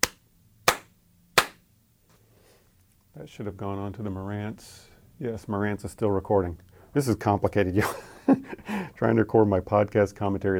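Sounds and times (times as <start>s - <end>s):
hand claps to sync recordings: 0.0s - 1.6s
speech: 3.2s - 10.5s.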